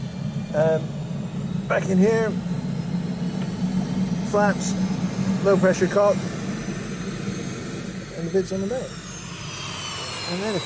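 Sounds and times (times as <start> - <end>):
Jet Provost jet engine starting up: 0.0 - 10.6
speech: 0.5 - 1.0, 1.7 - 2.5, 4.3 - 6.4, 8.2 - 9.0, 10.3 - 10.6.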